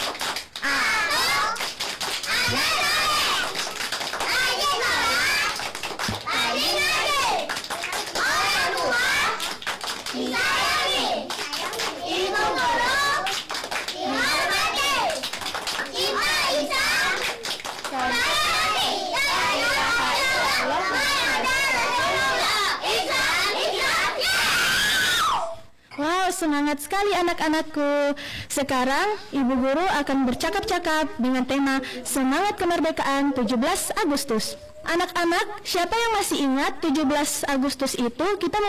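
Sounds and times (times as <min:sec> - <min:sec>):
group of children chanting a cheer in unison: 0:00.0 - 0:25.6
speech: 0:27.0 - 0:38.6.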